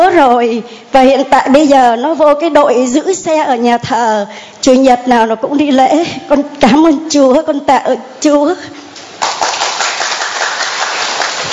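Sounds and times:
speech: 0.2s - 8.8s
church congregation clapping: 9.1s - 11.5s.

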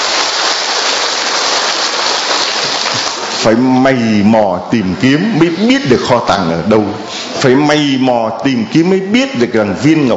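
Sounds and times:
large crowd applause: 0.0s - 3.5s
speech: 3.4s - 10.1s.

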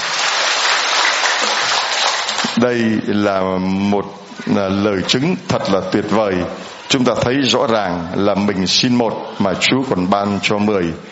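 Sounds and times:
crowd applause at a Catholic diocesan gathering: 0.0s - 2.6s
speech: 2.6s - 11.1s.

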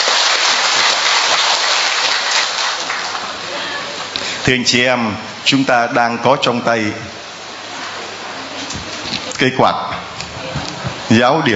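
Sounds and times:
big round of applause: 0.0s - 4.1s
speech: 4.4s - 7.2s, 9.4s - 9.9s, 11.1s - 11.5s.

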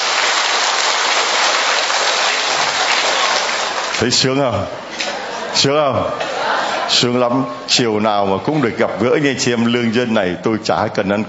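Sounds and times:
church audience applause: 0.0s - 4.3s
speech: 4.0s - 4.9s, 5.6s - 6.3s, 6.9s - 11.2s
laughter: 4.8s - 7.6s.

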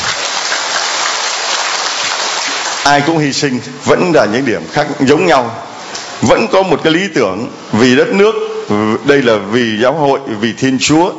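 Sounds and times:
crowd applause at a church gathering: 0.0s - 2.9s
speech: 2.8s - 5.7s, 6.3s - 11.1s.

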